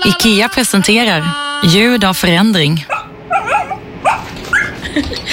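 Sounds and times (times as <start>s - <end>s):
speech: 0.1s - 2.9s, 4.9s - 5.2s
dog whimpering: 2.9s - 4.8s.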